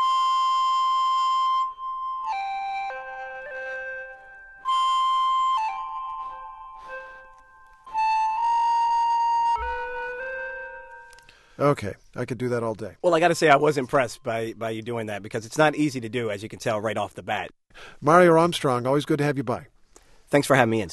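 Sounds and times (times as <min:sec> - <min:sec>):
electronic flute tone from blowing across microphone: 0:00.0 - 0:11.2
speech: 0:11.6 - 0:19.7, 0:20.3 - 0:20.9.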